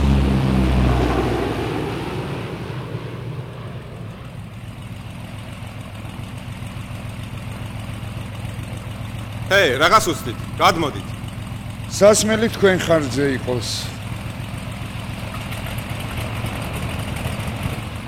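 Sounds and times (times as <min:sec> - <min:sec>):
engine drone of a Chilean mail plane: 0:00.0 - 0:18.0
speech: 0:09.5 - 0:11.2, 0:11.9 - 0:14.0.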